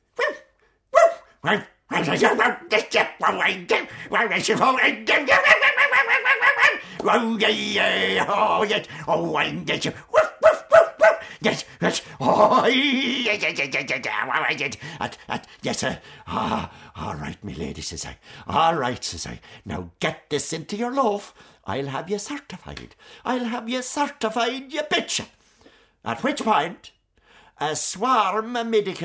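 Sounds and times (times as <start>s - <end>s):
person imitating a dog barking and growling: 0.1s - 15.5s
speech: 1.4s - 6.3s, 7.0s - 10.3s, 11.4s - 25.4s, 26.0s - 27.0s, 27.6s - 29.0s.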